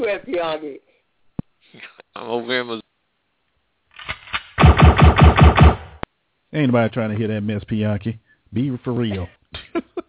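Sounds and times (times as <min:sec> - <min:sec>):
speech: 0:00.0 - 0:00.9, 0:01.7 - 0:02.9, 0:06.5 - 0:10.0
gunshot sound effect: 0:04.0 - 0:06.0
automatic gunfire sound effect: 0:04.1 - 0:06.0.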